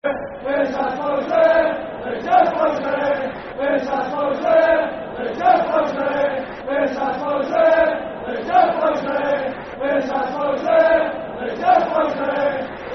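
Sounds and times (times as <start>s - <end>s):
football chant: 0.0s - 12.9s.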